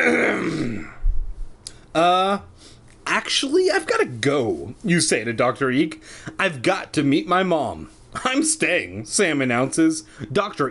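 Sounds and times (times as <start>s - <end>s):
person clearing throat: 0.0s - 1.0s
speech: 2.0s - 2.5s, 3.3s - 10.6s.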